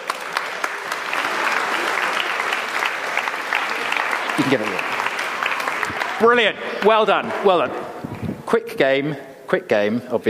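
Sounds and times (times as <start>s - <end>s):
audience applause: 0.0s - 8.0s
speech: 4.4s - 5.0s, 6.2s - 7.8s, 8.5s - 10.2s.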